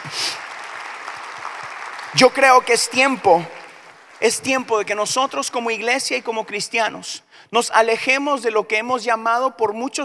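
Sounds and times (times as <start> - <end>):
audience applause: 0.0 - 6.4
speech: 2.1 - 3.6, 4.2 - 10.0.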